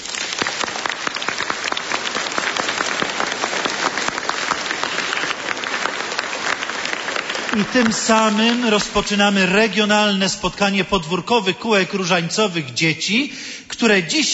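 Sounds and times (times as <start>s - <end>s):
crowd of children applauding warmly: 0.0s - 9.4s
speech: 7.6s - 14.3s.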